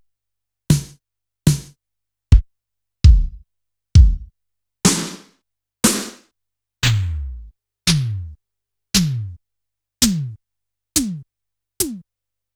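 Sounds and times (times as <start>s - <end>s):
Yamaha PSR-E323 electronic drum kit: 0.7s - 1.7s, 3.1s - 3.4s, 4.0s - 4.3s, 4.9s - 5.3s, 5.9s - 6.2s, 6.9s - 8.4s, 9.0s - 9.4s, 10.1s - 10.4s, 11.0s - 12.0s.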